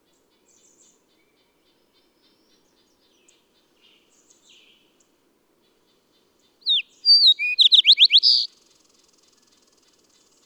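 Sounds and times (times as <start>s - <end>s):
bird whistling: 6.7s - 8.5s.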